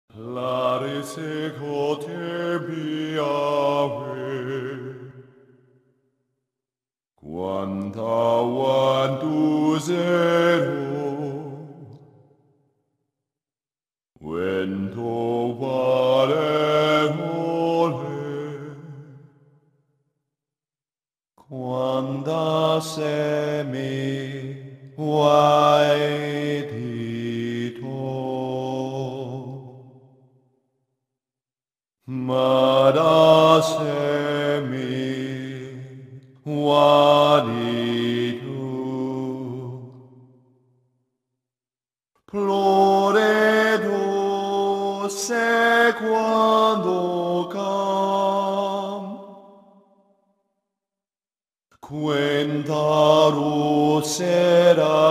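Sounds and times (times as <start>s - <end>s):
chanting: 0.1s - 5.4s, 7.2s - 12.0s, 14.2s - 19.2s, 21.4s - 30.0s, 32.1s - 40.3s, 42.3s - 49.6s, 51.8s - 55.0s.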